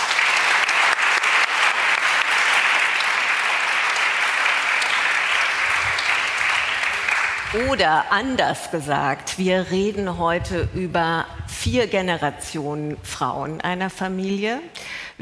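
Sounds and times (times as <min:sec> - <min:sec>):
audience applause: 0:00.0 - 0:07.9
speech: 0:07.5 - 0:15.2.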